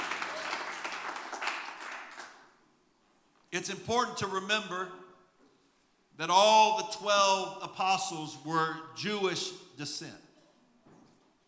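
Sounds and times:
crowd audience applauding: 0:00.0 - 0:02.5
speech: 0:03.5 - 0:05.0, 0:06.2 - 0:10.2.

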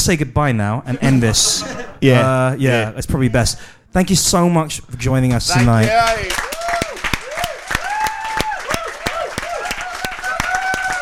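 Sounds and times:
speech: 0:00.0 - 0:06.5
audience applause: 0:05.5 - 0:11.0
whoops and cheers: 0:06.1 - 0:11.0.

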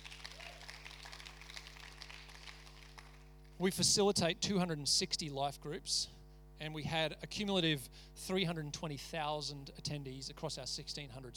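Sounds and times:
crowd applauding: 0:00.0 - 0:03.6
low steady hum: 0:00.0 - 0:11.3
speech: 0:03.6 - 0:11.3.

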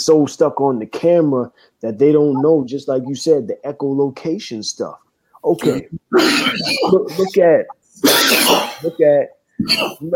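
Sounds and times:
speech: 0:00.0 - 0:10.1
person coughing and clearing their throat: 0:05.6 - 0:07.3, 0:08.0 - 0:09.0, 0:09.6 - 0:10.0.

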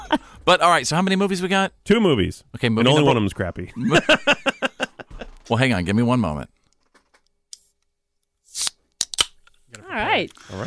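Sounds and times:
speech: 0:00.1 - 0:04.5, 0:05.5 - 0:06.6, 0:10.0 - 0:10.6
laughter: 0:02.8 - 0:05.4
drink can being cracked open: 0:08.5 - 0:09.6.

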